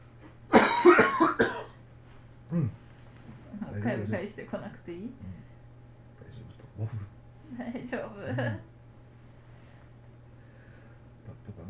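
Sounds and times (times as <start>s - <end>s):
coughing after choking while gargling: 0.5s - 1.8s
speech: 4.1s - 5.6s, 6.3s - 8.7s.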